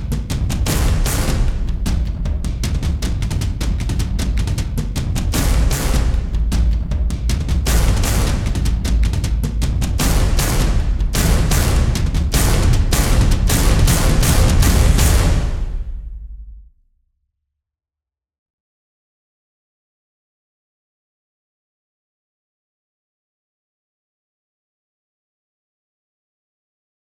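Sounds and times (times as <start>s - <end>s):
percussion: 0.0s - 16.7s.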